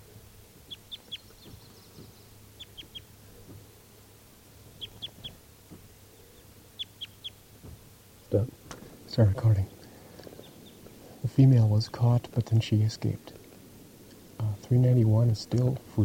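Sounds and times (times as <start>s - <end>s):
bird chirping in nearby trees: 0.0s - 11.2s
low steady hum: 0.0s - 16.0s
dull thump: 7.6s - 7.9s
speech: 8.3s - 8.5s, 9.2s - 9.8s, 11.4s - 13.4s, 14.7s - 16.0s.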